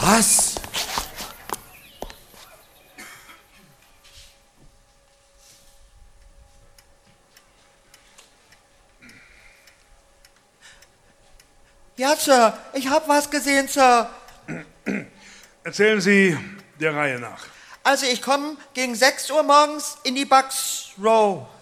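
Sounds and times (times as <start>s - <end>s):
quick footsteps of people hurrying on foot: 0.0s - 5.4s
speech: 0.1s - 0.5s, 12.0s - 14.7s, 15.6s - 21.6s.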